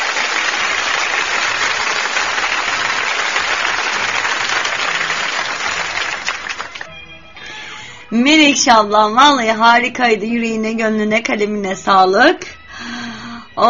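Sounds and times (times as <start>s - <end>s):
crowd applause: 0.0s - 6.9s
speech: 8.1s - 12.9s.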